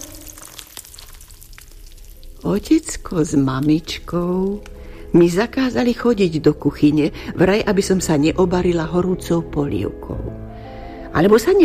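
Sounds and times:
pancake batter sizzling in hot oil in a pan: 0:00.0 - 0:06.4
speech: 0:02.4 - 0:10.4, 0:11.1 - 0:11.6.

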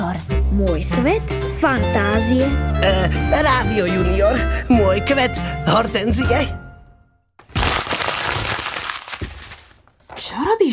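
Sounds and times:
speech: 0:00.5 - 0:06.6, 0:10.2 - 0:10.7
paper crumpling: 0:07.4 - 0:10.2.

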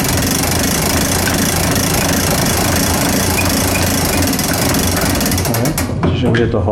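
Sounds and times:
mechanical clock's weight being wound up: 0:00.0 - 0:06.0
speech: 0:06.2 - 0:06.7.

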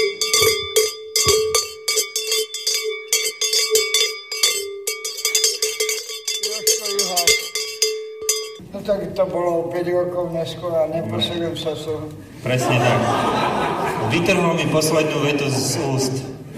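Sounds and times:
bell ringing: 0:00.0 - 0:08.6
speech: 0:09.2 - 0:16.4
laughter: 0:12.4 - 0:16.5.

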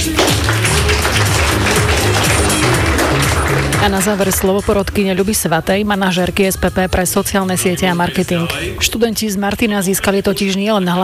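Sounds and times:
audience clapping: 0:00.0 - 0:05.2
low music: 0:00.0 - 0:10.3
speech: 0:03.8 - 0:11.0.

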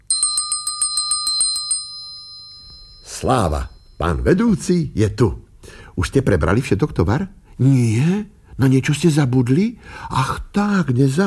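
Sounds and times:
small hand bell ringing: 0:00.0 - 0:04.5
speech: 0:03.2 - 0:11.2.

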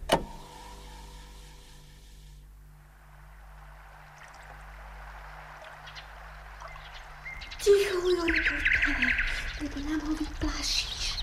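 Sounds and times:
steady low hum: 0:00.0 - 0:11.2
nightingale singing: 0:03.1 - 0:11.2.

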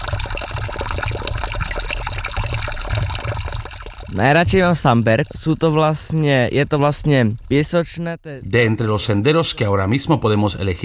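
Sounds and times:
water running from a fountain: 0:00.0 - 0:05.6
speech: 0:04.2 - 0:10.8.

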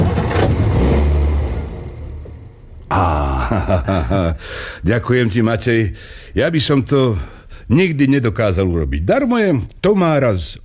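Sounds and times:
car engine starting up: 0:00.0 - 0:02.9
laughter: 0:02.9 - 0:04.7
speech: 0:03.6 - 0:10.6.

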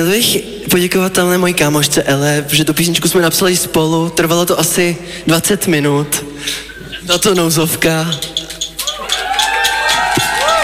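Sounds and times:
speech: 0:00.0 - 0:08.4
concert audience cheering and clapping: 0:08.5 - 0:10.6
loud whoops and shouts: 0:08.8 - 0:10.6.

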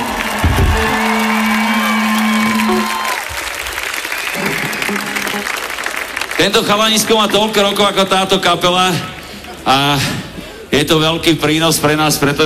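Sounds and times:
cheers and whoops: 0:00.0 - 0:05.4
crowd clapping: 0:00.0 - 0:10.4
speech: 0:06.4 - 0:12.4.

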